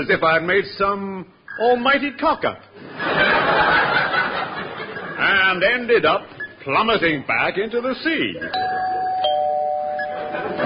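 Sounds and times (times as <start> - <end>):
speech: 0.0 - 3.8, 5.2 - 8.9
laughter: 2.8 - 5.3, 10.0 - 10.6
doorbell ringing: 8.5 - 10.6.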